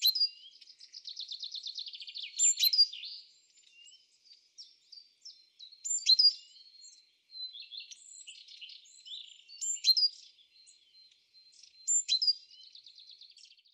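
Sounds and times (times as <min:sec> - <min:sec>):
great tit calls: 0:00.0 - 0:13.1.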